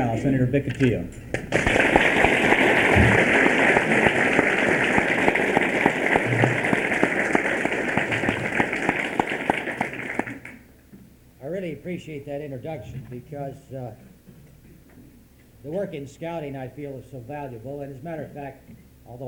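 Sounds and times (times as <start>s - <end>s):
speech: 0.0s - 1.7s, 11.8s - 14.1s, 15.6s - 19.2s
audience applause: 1.5s - 10.6s.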